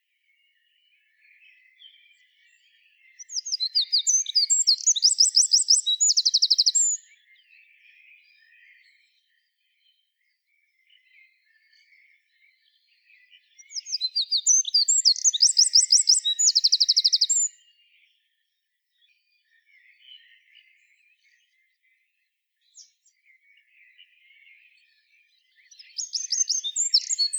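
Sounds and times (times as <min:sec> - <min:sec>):
Eurasian wren singing: 0:03.2 - 0:07.0, 0:13.7 - 0:17.6, 0:25.7 - 0:27.3.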